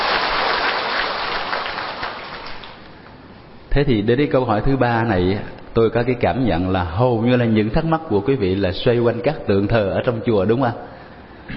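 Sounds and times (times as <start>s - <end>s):
big round of applause from audience: 0.0s - 2.9s
speech: 3.7s - 10.9s.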